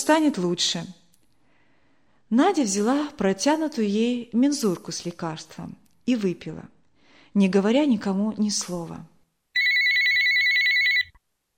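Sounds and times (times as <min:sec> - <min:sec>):
speech: 0:00.1 - 0:01.0, 0:02.3 - 0:09.1
mobile phone warbling electronic ringtone: 0:09.6 - 0:11.1.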